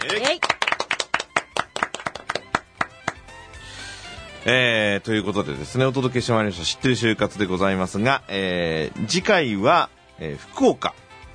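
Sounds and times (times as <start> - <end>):
clapping: 0.0 - 3.3
speech: 0.1 - 0.6, 4.4 - 11.0.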